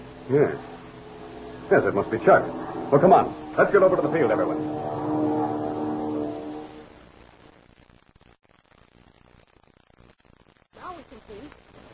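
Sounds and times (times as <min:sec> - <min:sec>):
small propeller plane flying overhead: 0:00.0 - 0:06.9
speech: 0:00.3 - 0:00.7, 0:01.7 - 0:05.0.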